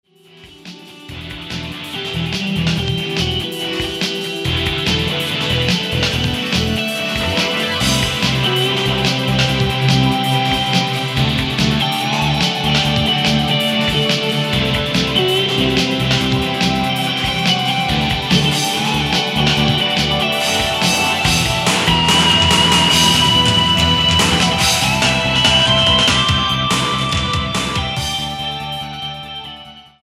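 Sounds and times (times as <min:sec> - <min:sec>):
rock music: 0:00.1 - 0:30.0.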